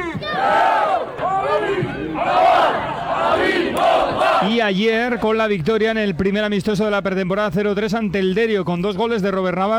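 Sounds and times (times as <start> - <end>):
crowd of fans cheering and shouting: 0.2 - 4.5
speech: 4.4 - 9.7.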